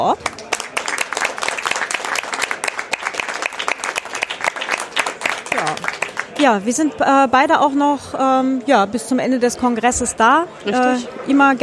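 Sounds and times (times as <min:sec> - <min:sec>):
speech: 0:00.0 - 0:00.3, 0:06.4 - 0:11.6
audience applause: 0:00.2 - 0:06.6.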